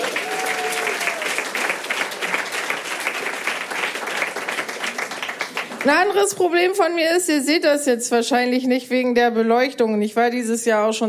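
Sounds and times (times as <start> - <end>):
cheer or whoop: 0.0 - 1.4
comedy audience applause: 0.0 - 6.2
speech: 5.8 - 11.0.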